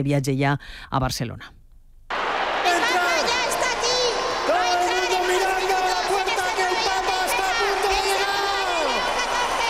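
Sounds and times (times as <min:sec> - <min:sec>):
speech: 0:00.0 - 0:01.6
huge crowd of thousands shouting and cheering: 0:02.1 - 0:09.6
steady applause: 0:02.1 - 0:09.6.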